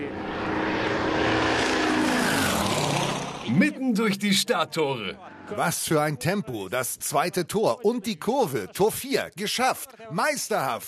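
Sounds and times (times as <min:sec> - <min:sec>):
racing drone propellers buzzing: 0:00.0 - 0:04.2
speech: 0:03.6 - 0:10.8.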